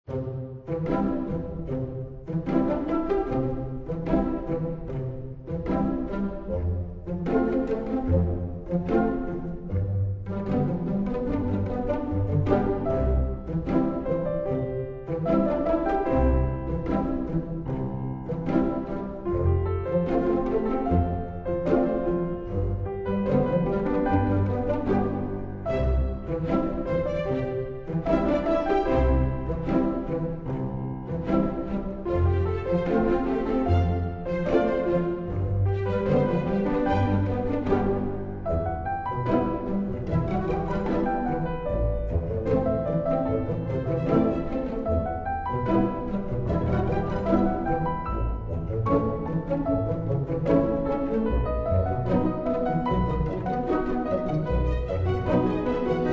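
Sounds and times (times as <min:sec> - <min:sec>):
casual theme music: 0:00.0 - 0:56.1.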